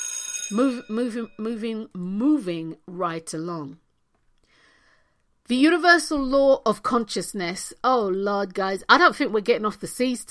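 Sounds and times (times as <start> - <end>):
bell ringing: 0.0 - 1.9
speech: 0.5 - 3.8, 5.5 - 10.2.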